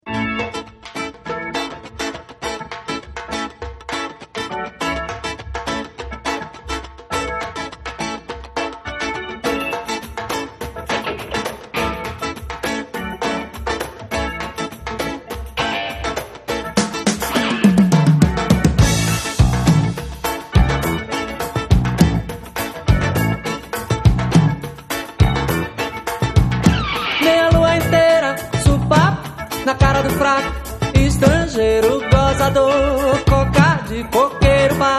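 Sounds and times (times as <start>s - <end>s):
MPB samba music: 0.0s - 34.9s.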